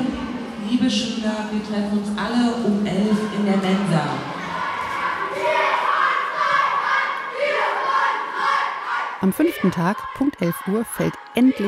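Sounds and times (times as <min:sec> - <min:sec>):
speech: 0:00.8 - 0:04.3, 0:09.2 - 0:11.6
children shouting while storming a cardboard wall: 0:04.4 - 0:11.6.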